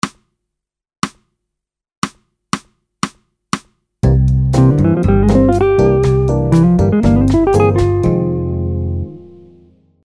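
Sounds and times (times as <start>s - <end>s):
musical licks: 4.0s - 9.3s.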